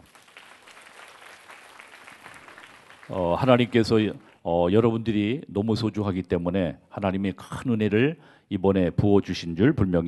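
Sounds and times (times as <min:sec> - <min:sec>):
audience applause: 0:00.0 - 0:04.0
speech: 0:03.1 - 0:10.0.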